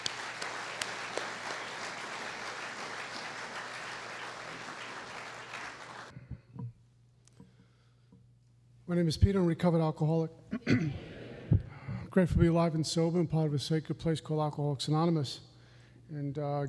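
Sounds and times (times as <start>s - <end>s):
audience applause at an Alcoholics Anonymous meeting: 0.0s - 6.1s
speech: 8.9s - 11.1s, 12.2s - 15.5s, 16.1s - 16.6s.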